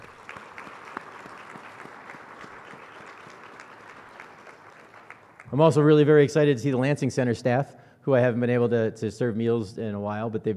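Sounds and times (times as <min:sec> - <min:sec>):
crowd applauding: 0:00.0 - 0:05.8
speech: 0:05.5 - 0:10.5.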